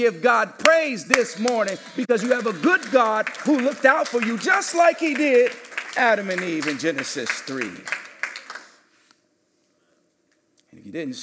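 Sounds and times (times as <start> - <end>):
speech: 0.0 - 8.0, 10.9 - 11.2
a few claps from audience: 0.6 - 9.2.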